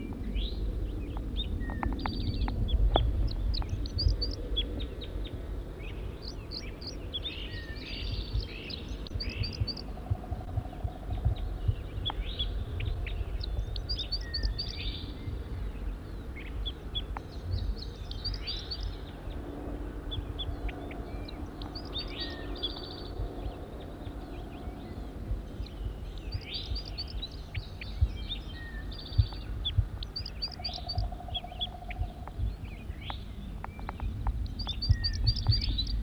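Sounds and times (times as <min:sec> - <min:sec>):
low rumbling background: 0:00.0 - 0:36.0
wild bird chirps: 0:05.9 - 0:19.0, 0:20.1 - 0:36.0.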